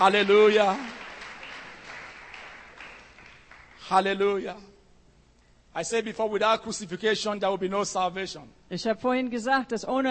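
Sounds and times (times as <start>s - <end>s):
speech: 0.0s - 0.9s, 3.9s - 4.7s, 5.8s - 10.1s
church congregation clapping hands during a bilingual English-German service: 0.0s - 4.4s.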